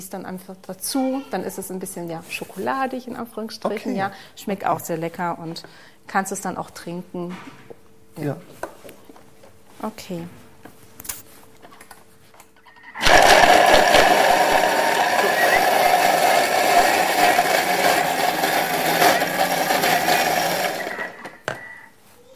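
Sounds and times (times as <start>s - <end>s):
speech: 0.0s - 7.6s, 8.2s - 8.7s, 9.8s - 10.4s
blender mixing smoothie ingredients: 13.0s - 21.4s.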